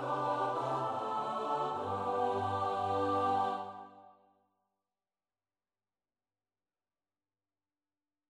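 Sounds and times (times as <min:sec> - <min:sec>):
MIDI choral music: 0:00.0 - 0:04.2.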